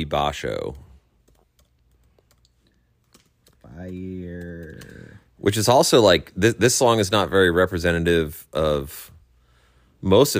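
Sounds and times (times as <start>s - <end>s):
speech: 0.0s - 0.8s, 3.8s - 4.6s, 5.4s - 9.1s, 10.0s - 10.3s
typing on a computer keyboard: 1.2s - 5.2s.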